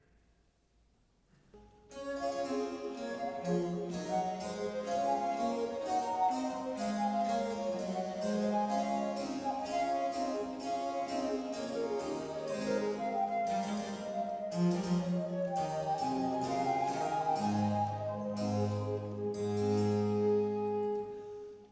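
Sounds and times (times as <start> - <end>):
sonata in D major allegro: 1.6 - 21.7.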